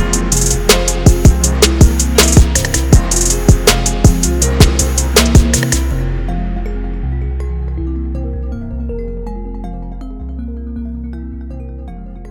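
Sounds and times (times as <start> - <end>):
instrumental music: 0.0 - 12.3.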